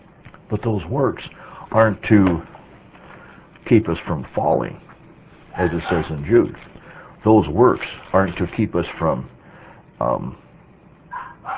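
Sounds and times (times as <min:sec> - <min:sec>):
speech: 0:00.5 - 0:02.5, 0:03.7 - 0:04.9, 0:05.6 - 0:09.3, 0:10.0 - 0:10.4
dog barking: 0:05.6 - 0:06.2, 0:11.1 - 0:11.5.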